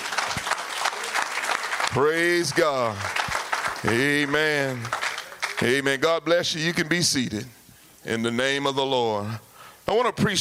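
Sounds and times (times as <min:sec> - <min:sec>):
audience clapping: 0:00.0 - 0:06.3
speech: 0:02.0 - 0:05.0, 0:05.6 - 0:10.4.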